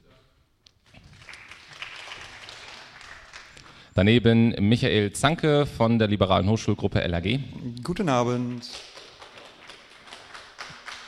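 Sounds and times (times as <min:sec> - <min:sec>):
roomful of people applauding: 0:00.8 - 0:03.9, 0:08.3 - 0:11.0
speech: 0:04.0 - 0:08.9.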